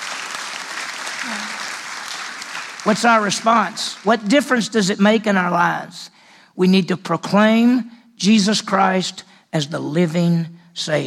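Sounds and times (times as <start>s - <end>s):
crowd clapping: 0.0s - 4.6s
speech: 1.2s - 1.6s, 2.8s - 11.0s.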